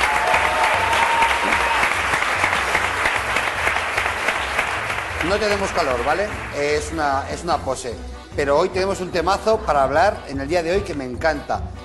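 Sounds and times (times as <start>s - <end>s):
audience applause: 0.0s - 7.0s
speech: 5.3s - 11.8s.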